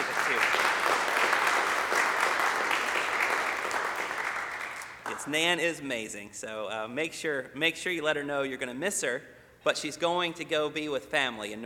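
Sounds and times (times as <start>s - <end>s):
people clapping: 0.0s - 5.4s
speech: 5.2s - 11.6s.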